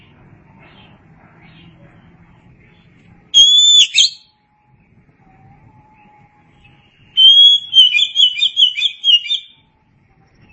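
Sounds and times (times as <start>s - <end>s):
Oriental magpie-robin song: 3.4s - 4.3s, 6.8s - 9.6s.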